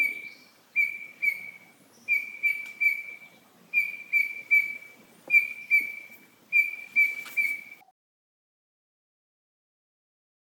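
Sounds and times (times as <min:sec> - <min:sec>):
grey-headed robin pure whistle: 0:00.0 - 0:07.9.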